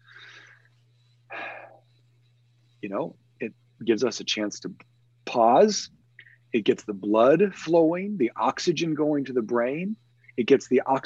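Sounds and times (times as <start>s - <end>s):
deep breath: 0.0s - 1.8s
low steady hum: 0.0s - 11.0s
speech: 2.8s - 11.0s.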